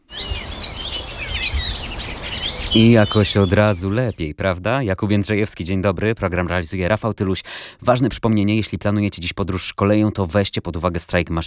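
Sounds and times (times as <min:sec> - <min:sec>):
birdsong: 0:00.0 - 0:04.3
speech: 0:02.8 - 0:11.4.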